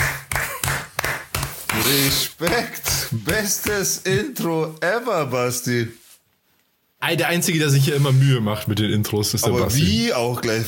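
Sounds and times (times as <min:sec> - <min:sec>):
hand claps: 0:00.0 - 0:04.2
speech: 0:01.8 - 0:06.0, 0:07.0 - 0:10.6.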